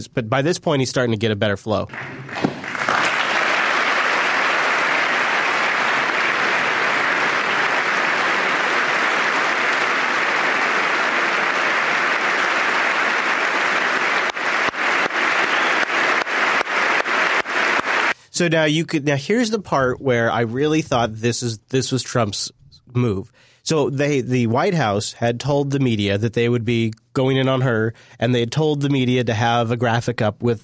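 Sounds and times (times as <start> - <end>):
speech: 0.0 - 2.5, 18.4 - 30.6
audience applause during speech: 1.9 - 18.2.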